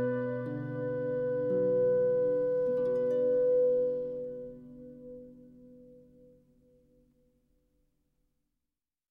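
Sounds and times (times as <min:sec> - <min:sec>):
second flute: 0:00.0 - 0:06.8.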